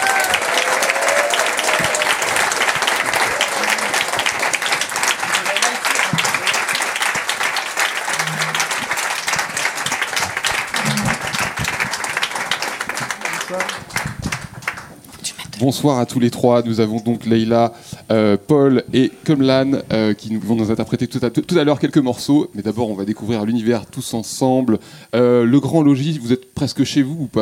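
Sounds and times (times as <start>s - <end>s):
audience applause welcoming a band on stage: 0.0s - 15.0s
speech: 15.6s - 27.3s.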